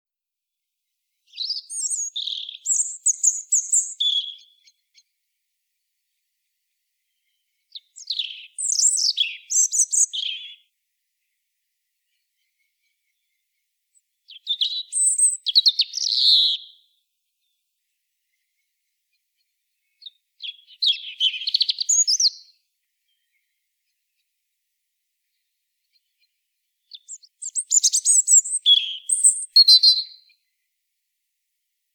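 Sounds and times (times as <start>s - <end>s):
European robin singing: 1.2s - 5.1s, 7.0s - 11.4s, 12.1s - 17.6s, 19.7s - 24.1s, 25.4s - 30.6s.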